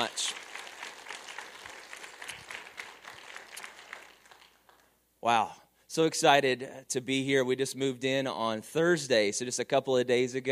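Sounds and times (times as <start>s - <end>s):
large group applauding: 0.0s - 5.0s
speech: 5.2s - 10.5s.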